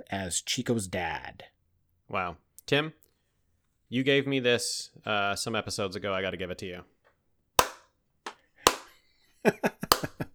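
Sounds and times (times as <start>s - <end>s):
speech: 0.1s - 1.5s, 2.1s - 3.0s, 3.9s - 6.9s, 9.4s - 9.9s
slow clap: 7.6s - 7.8s, 8.7s - 8.9s, 9.9s - 10.3s.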